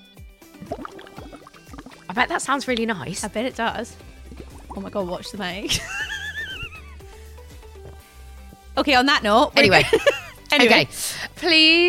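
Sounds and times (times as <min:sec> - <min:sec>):
slurping a pina colada through a straw: 0:00.6 - 0:02.1, 0:04.0 - 0:05.0
speech: 0:02.2 - 0:04.1, 0:04.8 - 0:06.0, 0:08.8 - 0:11.8
laughter: 0:05.6 - 0:07.0, 0:09.6 - 0:10.3.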